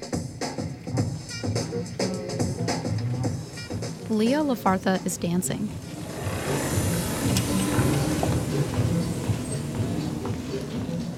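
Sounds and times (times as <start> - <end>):
music: 0.0 - 11.1
speech: 4.1 - 5.9
power wheelchair whirring across wood floor of a dance studio: 5.7 - 11.1.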